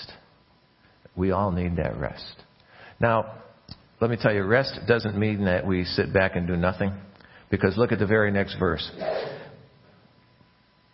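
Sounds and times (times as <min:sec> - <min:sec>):
speech: 0:01.2 - 0:02.4, 0:03.0 - 0:09.3
sneeze: 0:09.0 - 0:09.6.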